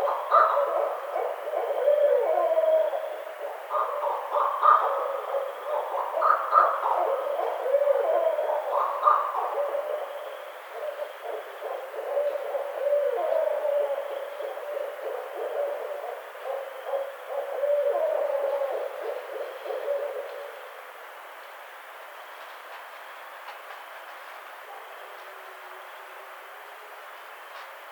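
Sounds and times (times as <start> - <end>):
Barred Owl calling: 0.0 - 20.8.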